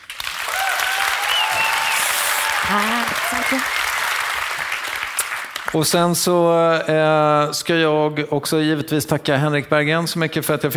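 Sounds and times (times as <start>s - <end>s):
audience applause: 0.0s - 5.8s
speech: 2.7s - 3.8s, 5.7s - 10.7s.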